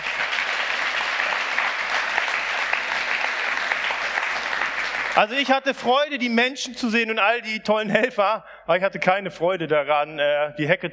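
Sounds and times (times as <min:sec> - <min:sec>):
audience applause: 0:00.0 - 0:05.4
speech: 0:05.2 - 0:10.9.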